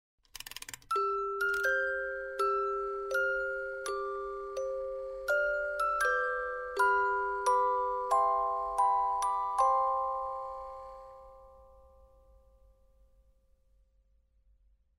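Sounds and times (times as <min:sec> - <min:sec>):
music box melody: 0:00.9 - 0:12.2.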